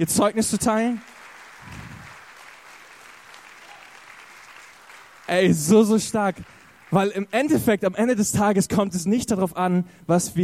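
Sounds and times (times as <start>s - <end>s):
speech: 0.0s - 1.1s, 5.3s - 10.4s
audience clapping: 0.0s - 7.8s.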